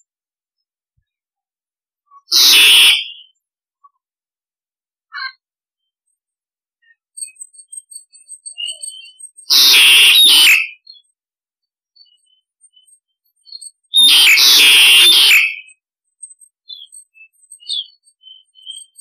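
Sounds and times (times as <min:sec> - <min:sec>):
starling harsh rasping calls: 0:02.3 - 0:03.2, 0:09.5 - 0:10.8, 0:13.9 - 0:15.7.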